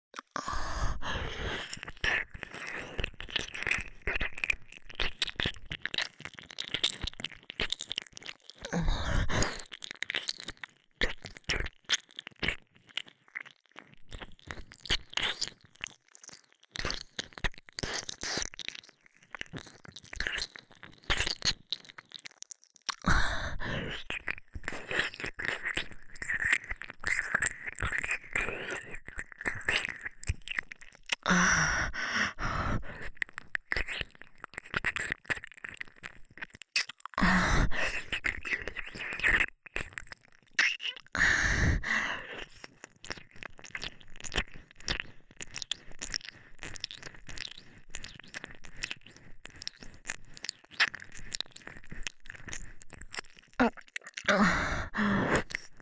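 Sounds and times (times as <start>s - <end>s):
left ear licking ASMR: 0.2s - 55.8s.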